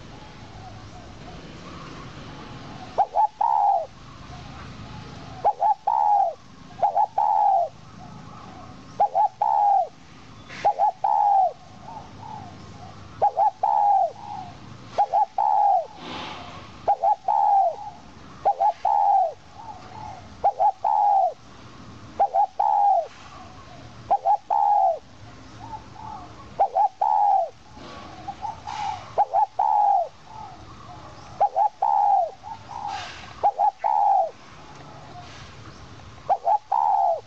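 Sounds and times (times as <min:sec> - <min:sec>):
owl call: 0:02.8 - 0:04.0, 0:05.3 - 0:07.8, 0:09.0 - 0:09.9, 0:10.5 - 0:16.1, 0:16.8 - 0:21.4, 0:22.2 - 0:27.6, 0:28.2 - 0:30.6, 0:31.4 - 0:34.4, 0:36.3 - 0:37.2.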